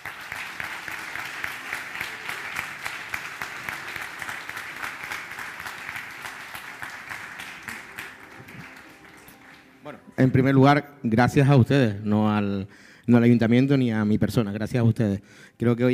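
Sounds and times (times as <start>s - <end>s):
audience applause: 0.0s - 9.8s
speech: 10.2s - 15.9s.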